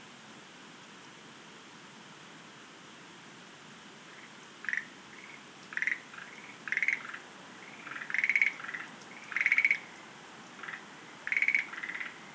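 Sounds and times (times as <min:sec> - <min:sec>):
Schlegel's green tree frog calling: 0:04.1 - 0:12.3.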